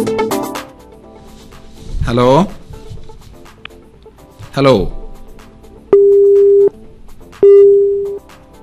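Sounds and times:
speech: 0:02.1 - 0:02.6, 0:04.6 - 0:05.0
telephone busy tone after a call drops: 0:06.0 - 0:06.7, 0:07.4 - 0:08.2.

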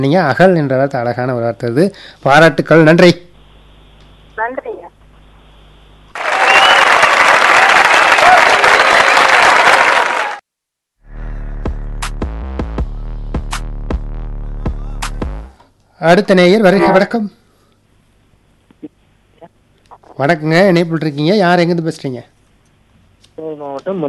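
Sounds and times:
speech: 0:00.0 - 0:03.2, 0:16.0 - 0:17.4, 0:20.2 - 0:22.3, 0:23.4 - 0:24.0
low hum with sharp clicks: 0:03.3 - 0:05.9, 0:17.6 - 0:20.2, 0:22.3 - 0:24.0
audience clapping on a Tamil word-game call-in show: 0:06.1 - 0:10.4.

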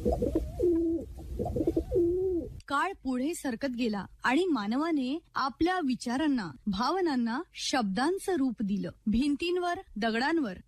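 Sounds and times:
pigeon cooing: 0:00.0 - 0:02.6
speech: 0:02.7 - 0:10.6.

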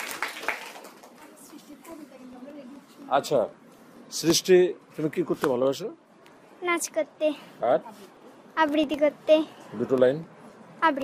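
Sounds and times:
hand claps: 0:00.0 - 0:02.0
speech: 0:03.1 - 0:06.0, 0:06.6 - 0:11.0.

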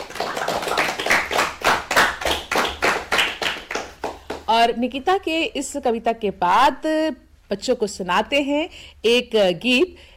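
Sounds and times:
audience clapping: 0:00.0 - 0:04.5
speech: 0:04.5 - 0:10.1.

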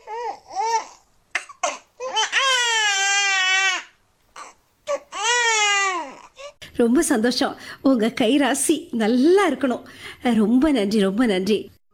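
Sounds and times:
newborn baby girl crying just after birth: 0:00.0 - 0:06.6
speech: 0:06.8 - 0:11.8.

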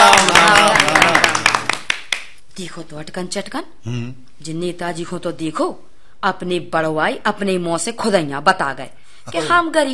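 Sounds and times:
crowd clapping: 0:00.0 - 0:02.4
speech: 0:02.6 - 0:09.9.

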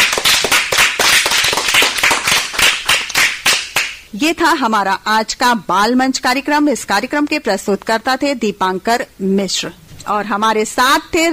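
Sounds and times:
loud applause: 0:00.0 - 0:03.9
speech: 0:04.3 - 0:11.3.

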